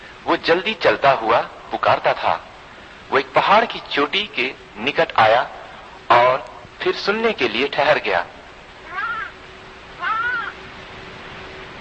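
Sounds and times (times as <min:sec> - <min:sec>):
faint steady hum: 0:00.0 - 0:11.7
speech: 0:00.2 - 0:02.5, 0:03.1 - 0:08.4
lamb crying out: 0:10.0 - 0:10.6.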